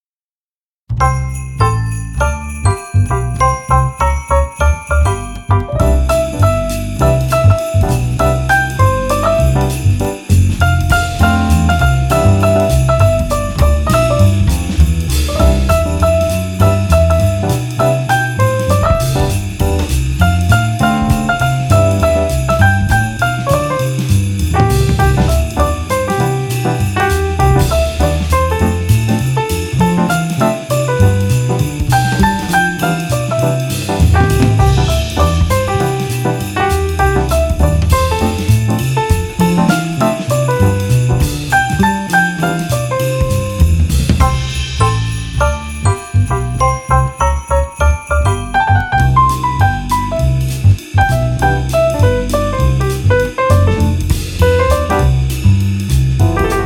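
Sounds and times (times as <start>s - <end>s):
Christmas song: 0.9s - 56.6s.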